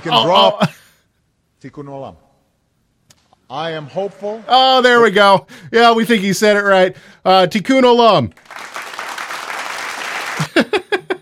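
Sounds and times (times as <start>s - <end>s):
speech: 0.0s - 0.8s, 1.6s - 2.2s, 3.5s - 8.8s
applause: 3.7s - 5.1s, 8.3s - 10.6s.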